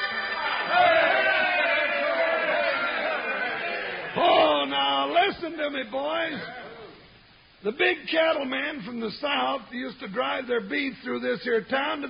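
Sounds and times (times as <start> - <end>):
rowdy crowd shouting and clamoring: 0.1 - 5.2
speech: 5.5 - 6.6, 7.6 - 12.0.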